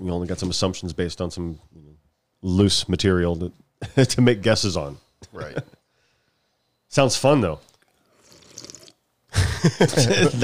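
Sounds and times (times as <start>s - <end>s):
speech: 0.0s - 1.8s, 2.4s - 5.8s, 6.9s - 7.7s, 9.6s - 10.4s
laughter: 5.2s - 5.8s, 9.3s - 10.4s
person slurping soup: 7.8s - 9.0s.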